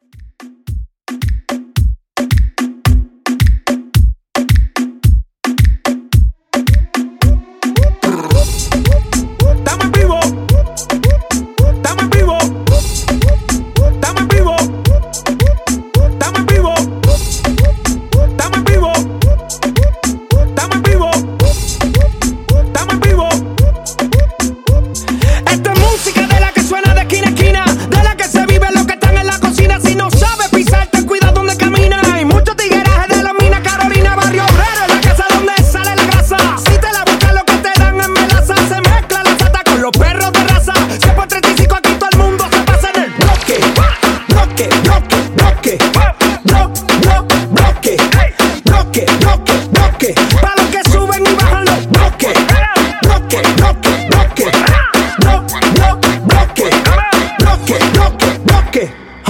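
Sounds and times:
party reggaeton music at 110 BPM: 0.0 - 59.2.

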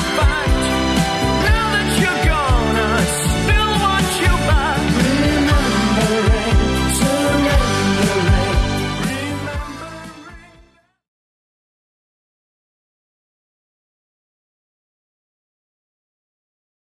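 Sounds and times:
1980s-style music track at 119 bpm: 0.0 - 11.0.

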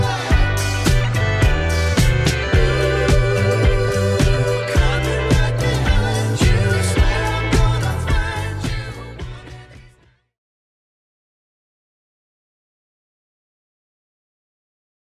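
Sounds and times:
seventies-style music: 0.0 - 10.1.

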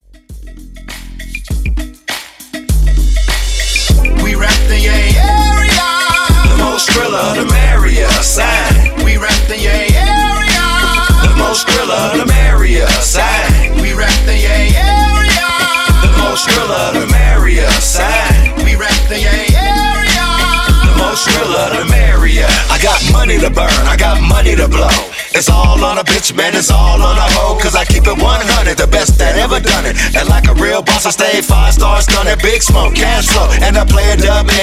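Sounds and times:
music segue: 0.0 - 34.6.

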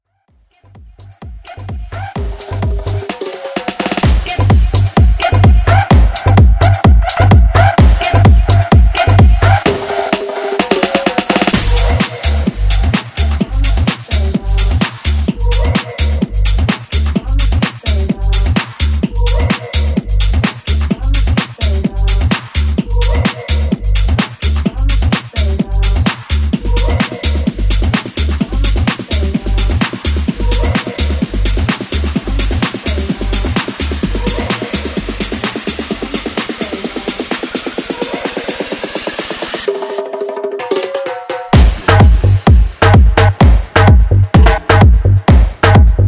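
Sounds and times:
tribal house music: 0.3 - 46.0.

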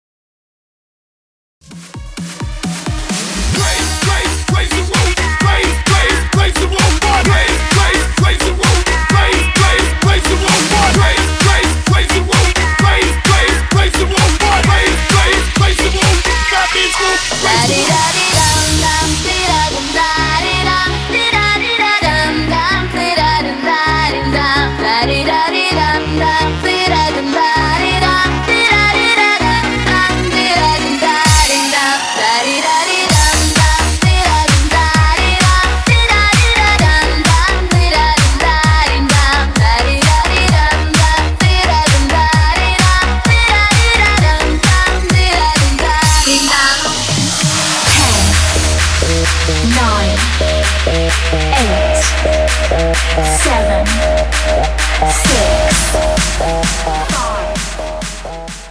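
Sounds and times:
dancehall music: 1.6 - 58.7.

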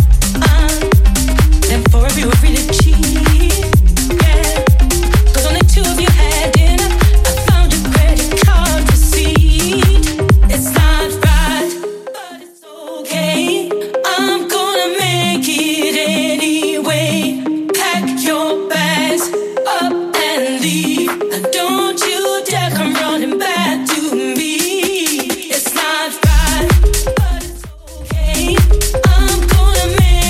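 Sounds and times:
house music DJ edit: 0.0 - 12.4, 13.1 - 30.2.

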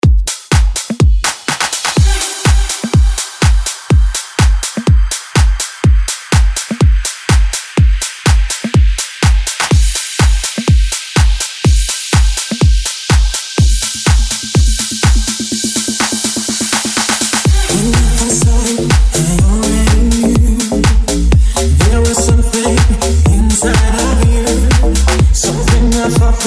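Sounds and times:
deep house music at 124 BPM: 0.0 - 26.4.

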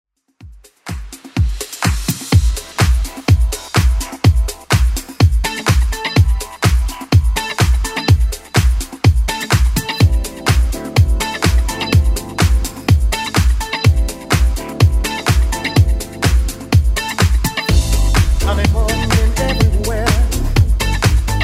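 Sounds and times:
1980s club music: 0.4 - 21.4.

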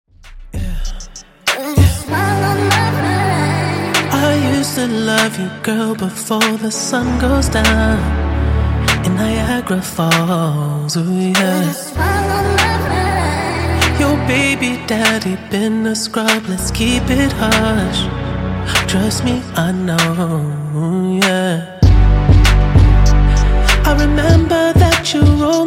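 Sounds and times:
intro outro music at 97 BPM: 0.1 - 25.6.

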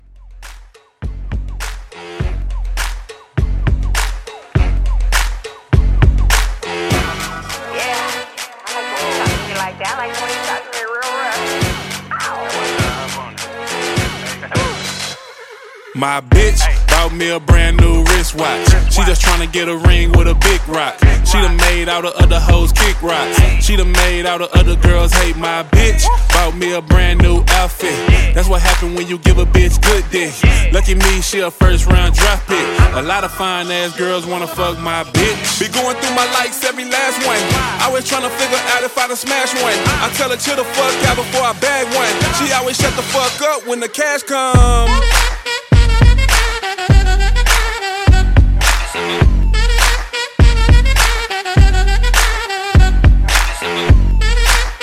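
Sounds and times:
music mashup: 0.0 - 54.8.

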